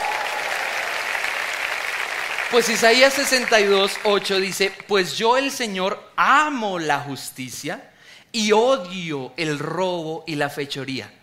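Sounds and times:
audience applauding: 0.0 - 4.9
speech: 2.5 - 11.2.

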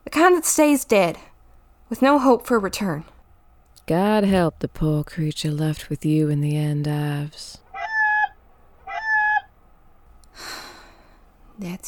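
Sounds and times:
speech: 0.2 - 1.3, 1.9 - 3.1, 3.9 - 7.6, 11.6 - 11.8
chicken clucking: 7.7 - 9.5.

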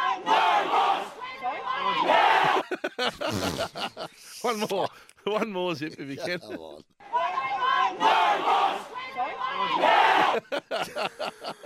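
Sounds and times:
crowd chanting: 0.0 - 2.8, 7.0 - 10.5
laughter: 2.0 - 7.0, 10.0 - 11.6
speech: 3.0 - 7.0, 9.6 - 11.6.

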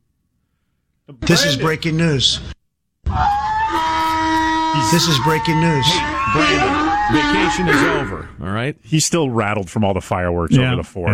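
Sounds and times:
speech: 1.1 - 3.3, 4.7 - 11.1
donkey braying sound effect: 3.7 - 8.4.

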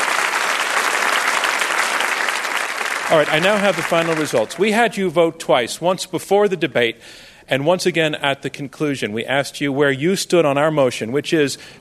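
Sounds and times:
audience applause for two debate teams: 0.0 - 4.8
speech: 3.1 - 11.7.

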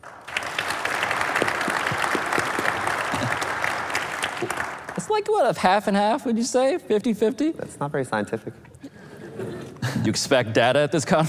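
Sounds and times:
audience clapping: 0.0 - 5.4
speech: 5.1 - 8.7, 10.0 - 11.2.

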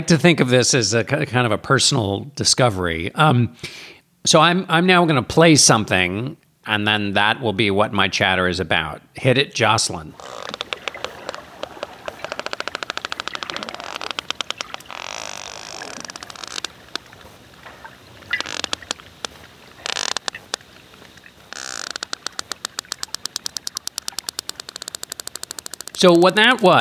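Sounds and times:
speech: 0.0 - 10.7, 26.0 - 26.7
underwater hiss: 10.1 - 26.0
sperm whales clicking: 10.1 - 26.7.

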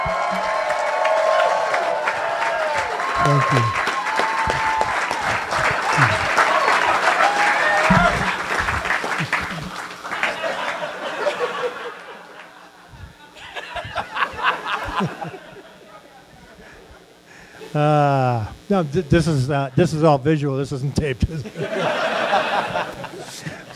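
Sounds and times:
live audience applause: 0.0 - 15.5
laughter: 3.0 - 18.1, 21.2 - 23.7
speech: 3.2 - 3.8, 18.8 - 23.7.

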